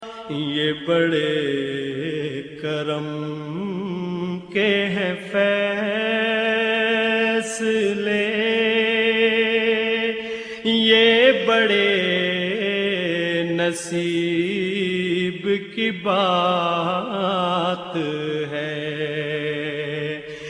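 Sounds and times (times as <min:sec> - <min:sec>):
Islamic naat devotional singing ringtone: 0:00.0 - 0:20.4.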